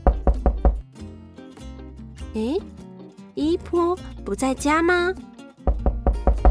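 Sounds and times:
knocking on a door: 0.0 - 0.8, 5.7 - 6.5
speech: 2.3 - 2.8, 3.4 - 5.3.

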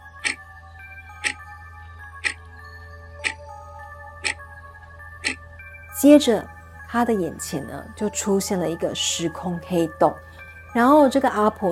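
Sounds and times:
clock ticking: 0.2 - 0.4
speech: 6.0 - 11.7.

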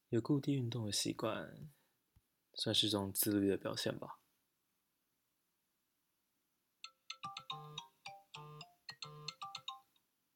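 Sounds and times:
speech: 0.1 - 1.8, 2.6 - 4.2
bright electronic phone ringtone: 6.8 - 10.0.

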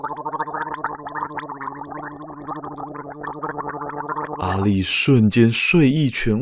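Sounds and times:
gurgling of water rushing into a throat: 0.0 - 6.4
speech: 4.5 - 6.4.

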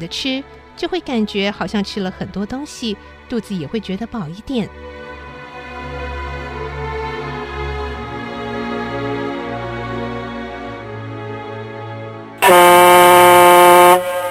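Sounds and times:
speech: 0.0 - 5.0
factory work whistle blowing: 12.4 - 14.2.

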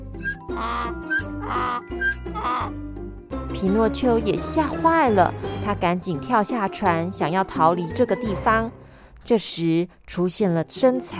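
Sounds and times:
donkey braying: 0.0 - 2.8
speech: 0.5 - 11.1.

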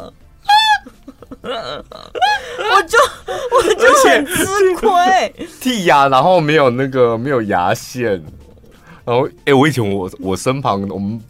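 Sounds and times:
laughter: 0.5 - 5.6
person imitating burps: 1.2 - 2.8
speech: 1.4 - 8.4, 9.1 - 11.2.

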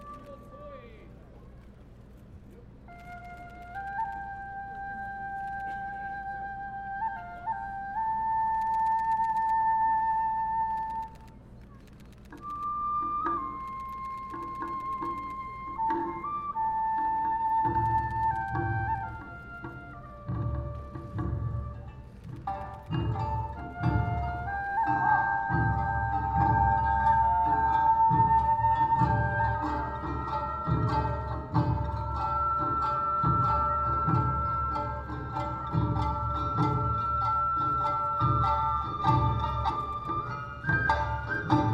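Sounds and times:
high flute melody of Awa dance troupe: 0.0 - 1.0, 2.5 - 41.7
bright clanking percussion: 12.0 - 41.7
deep drums with quick steady beat: 17.8 - 41.7.

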